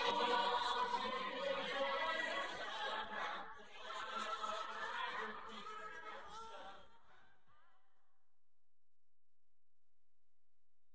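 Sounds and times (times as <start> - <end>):
vocals: 0.0 - 8.2.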